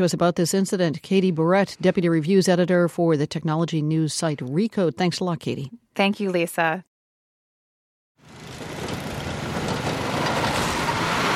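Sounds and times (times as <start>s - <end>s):
speech: 0.0s - 6.9s
snow plows and snow blowers: 8.2s - 11.3s.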